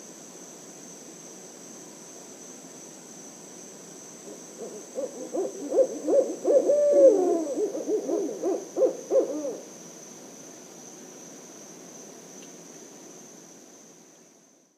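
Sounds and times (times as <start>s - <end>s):
barred owl song series: 4.6s - 9.7s.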